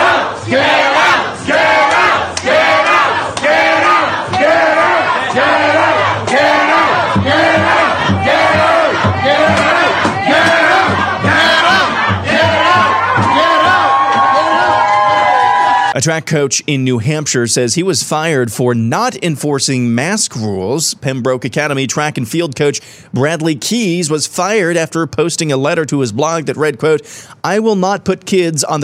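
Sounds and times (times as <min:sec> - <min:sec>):
crowd in a bustling restaurant in Vancouver driving health ministers out: 0:00.0 - 0:15.9
speech: 0:16.0 - 0:28.8.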